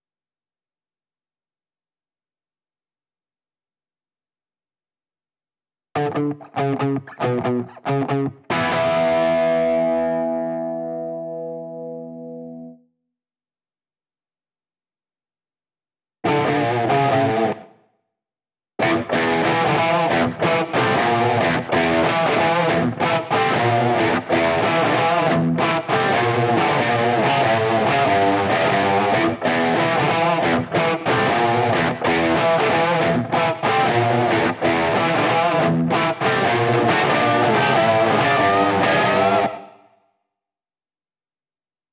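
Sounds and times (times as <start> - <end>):
electric guitar: 6.0 - 12.8, 16.2 - 17.8, 18.8 - 39.8.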